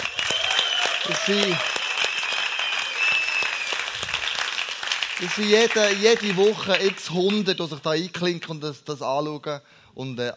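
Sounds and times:
audience applause: 0:00.0 - 0:07.6
speech: 0:01.1 - 0:01.7, 0:05.2 - 0:10.3.

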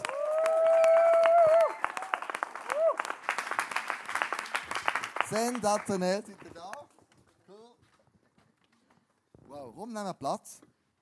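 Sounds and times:
loud high whooping cheer: 0:00.0 - 0:03.2
audience applause: 0:00.0 - 0:07.0
speech: 0:05.3 - 0:06.6, 0:09.8 - 0:10.7.

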